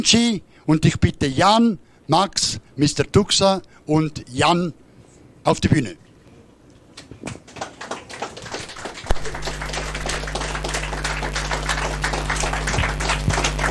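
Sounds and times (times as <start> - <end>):
speech: 0.0 - 4.8, 5.4 - 6.0, 7.2 - 7.4
audience applause: 7.6 - 13.7
low constant hum: 9.1 - 13.7.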